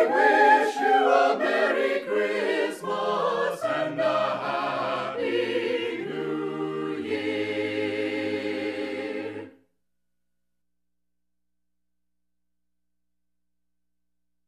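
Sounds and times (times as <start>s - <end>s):
carolers: 0.0s - 9.4s.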